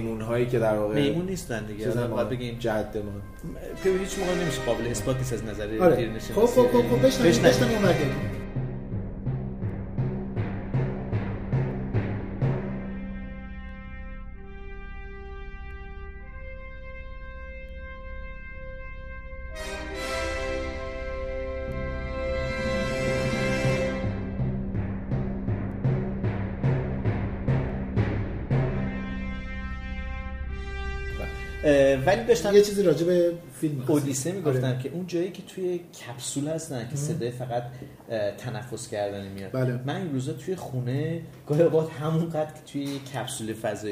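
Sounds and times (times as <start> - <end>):
speech: 0.0 - 8.4, 32.3 - 43.8
bright swelling brass chord: 0.0 - 34.6
orchestral film music: 0.0 - 34.6
rhythmic pounding drum beats: 6.1 - 13.4, 23.3 - 29.3.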